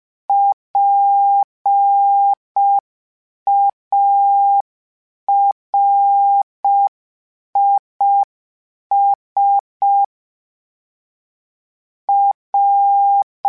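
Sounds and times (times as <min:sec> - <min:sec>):
Morse code beeps: 0:00.3 - 0:02.8, 0:03.5 - 0:04.7, 0:05.3 - 0:06.9, 0:08.9 - 0:10.1, 0:12.1 - 0:13.4.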